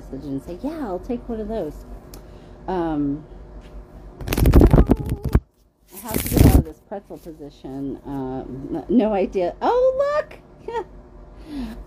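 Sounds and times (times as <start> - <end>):
speech: 0.1 - 3.4, 6.0 - 11.8
Sacred Forest Oracle card deck being shuffled and drawn: 4.2 - 7.3.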